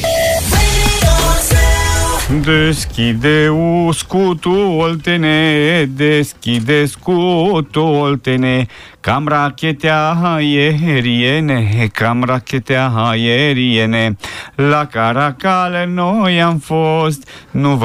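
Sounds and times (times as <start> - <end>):
Romanian Christmas carol from Olt county: 0.1 - 17.8.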